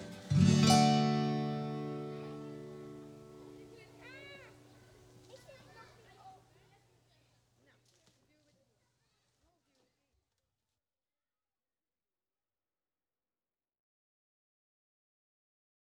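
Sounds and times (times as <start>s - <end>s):
folk music: 0.0s - 4.8s.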